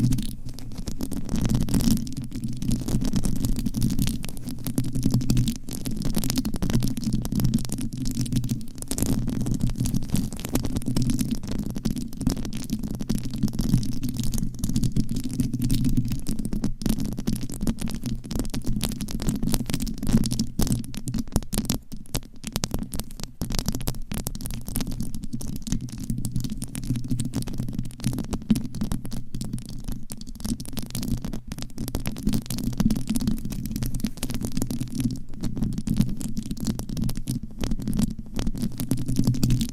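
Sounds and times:
scratching on a microphone cover: 0.0 - 20.8, 29.6 - 39.7
thin faint crackle: 0.0 - 39.7.

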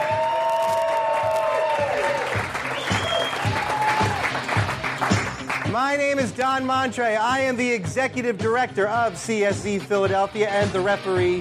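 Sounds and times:
crowd cheering and applauding: 0.0 - 6.5
shrill whistles from the crowd: 2.6 - 4.1
speech: 5.7 - 11.3.

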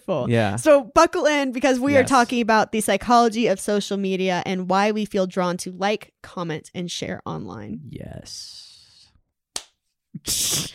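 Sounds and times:
speech: 0.1 - 8.7, 10.2 - 10.7
two people clapping hands at once: 9.6 - 9.8.

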